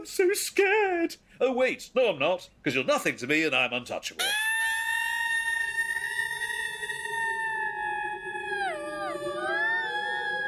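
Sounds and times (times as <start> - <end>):
speech: 0.0 - 4.6
eerie banshee wail: 4.2 - 10.4.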